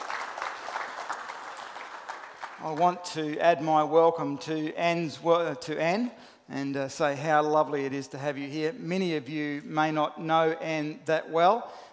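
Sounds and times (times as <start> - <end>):
audience applause congratulating a newly married couple: 0.0 - 3.0
speech: 2.6 - 11.8.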